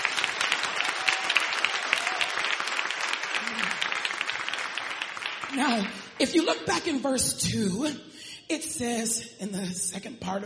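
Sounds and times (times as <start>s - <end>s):
audience clapping hands: 0.0s - 6.6s
speech: 5.5s - 10.4s.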